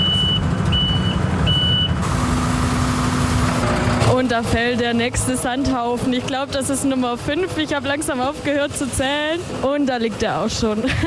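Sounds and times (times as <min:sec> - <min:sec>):
truck reversing alarm beeps: 0:00.0 - 0:03.7
truck diesel engine rumbling: 0:00.0 - 0:11.0
speech: 0:04.2 - 0:11.0.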